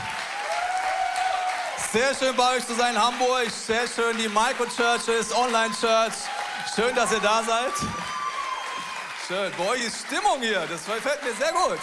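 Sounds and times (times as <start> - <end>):
audience applause: 0.0 - 11.8
speech: 1.9 - 8.0, 9.3 - 11.8.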